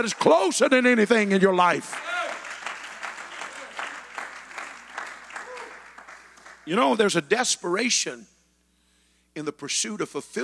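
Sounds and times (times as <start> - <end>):
speech: 0.0 - 2.1, 6.7 - 8.3, 9.4 - 10.4
audience clapping hands: 0.0 - 7.0.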